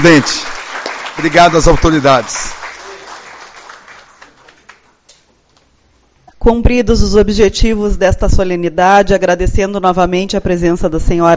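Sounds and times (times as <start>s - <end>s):
speech: 0.0s - 0.5s, 1.2s - 2.6s, 6.4s - 11.3s
audience applause: 0.0s - 5.0s.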